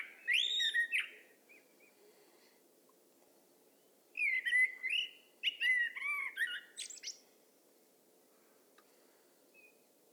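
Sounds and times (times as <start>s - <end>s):
Turdus merula common blackbird singing: 0.0s - 2.0s, 4.2s - 7.2s.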